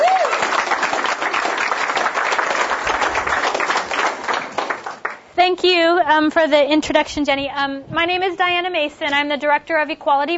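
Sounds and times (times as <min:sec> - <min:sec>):
audience applauding: 0:00.0 - 0:05.3
speech: 0:05.6 - 0:10.3.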